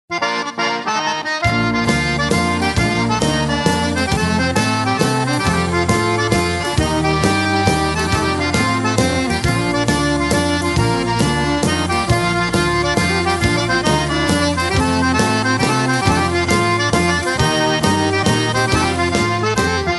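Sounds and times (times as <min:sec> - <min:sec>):
waltz music: 0:00.1 - 0:19.9.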